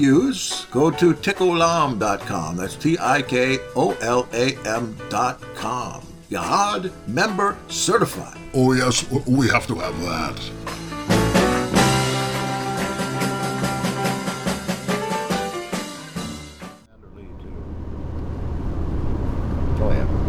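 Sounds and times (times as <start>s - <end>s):
speech: 0.0s - 10.8s
rhythmic music: 0.0s - 17.0s
car driving on a lonely backwoods road in Georgia: 16.9s - 20.2s.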